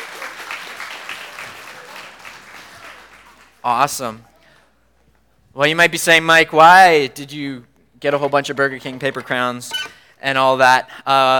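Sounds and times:
crowd applause: 0.0 - 3.8
speech: 3.6 - 4.3, 5.6 - 11.3.

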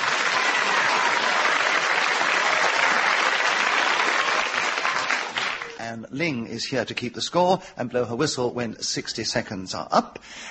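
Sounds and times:
studio audience applause: 0.0 - 5.8
speech: 6.0 - 10.5.

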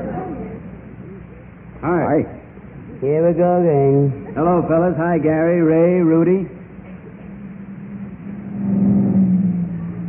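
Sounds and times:
speech: 1.8 - 2.4, 3.0 - 6.6
truck driving past: 6.5 - 10.0.

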